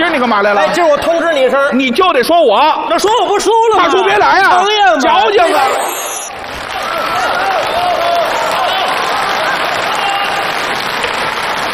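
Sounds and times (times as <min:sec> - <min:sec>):
speech: 0:00.0 - 0:06.0
audience applause: 0:06.3 - 0:11.7.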